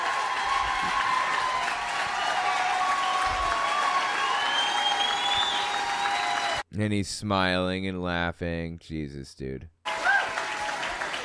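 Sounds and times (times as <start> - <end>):
cheers and whistles: 0.0 - 6.6, 9.9 - 11.2
large crowd applauding: 0.0 - 6.6, 9.9 - 11.2
speech: 6.8 - 9.8.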